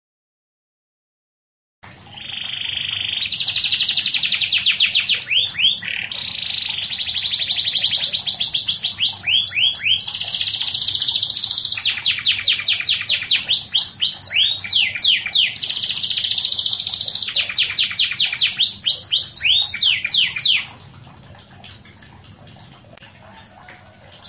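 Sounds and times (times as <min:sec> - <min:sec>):
canary singing with buzzy rolling trill: 0:02.2 - 0:20.8.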